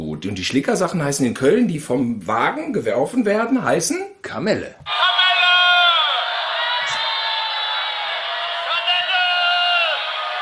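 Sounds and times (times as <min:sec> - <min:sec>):
speech: 0:00.2 - 0:05.2
crowd cheering effect from sound box: 0:04.9 - 0:10.4.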